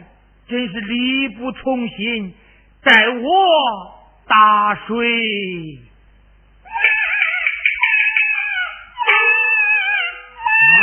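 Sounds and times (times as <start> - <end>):
speech: 0.5 - 5.9
baby crying: 6.7 - 10.8.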